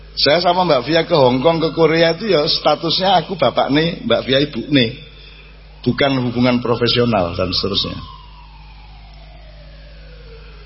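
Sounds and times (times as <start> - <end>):
speech: 0.2 - 5.1, 5.8 - 8.2
fire engine siren wailing: 0.3 - 10.6.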